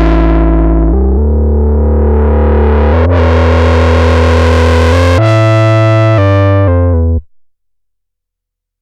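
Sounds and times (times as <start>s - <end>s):
synthesizer tone with oscillator sync, cross-modulation and filter: 0.0s - 6.8s.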